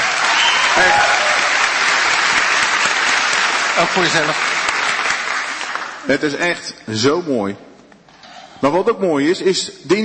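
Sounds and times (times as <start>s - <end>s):
audience applause: 0.0s - 6.1s
speech: 0.8s - 1.1s, 3.8s - 4.5s, 6.0s - 7.7s, 8.6s - 10.0s.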